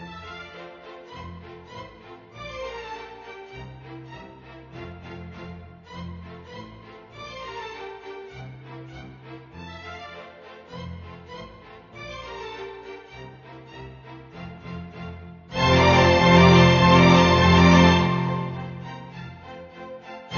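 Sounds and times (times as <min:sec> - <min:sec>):
polka music: 0:15.5 - 0:19.4.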